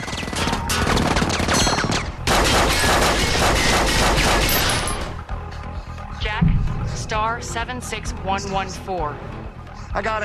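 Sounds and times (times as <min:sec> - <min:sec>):
gunfire in a firefight: 0:00.0 - 0:05.1
speech: 0:07.1 - 0:09.4, 0:10.0 - 0:10.2.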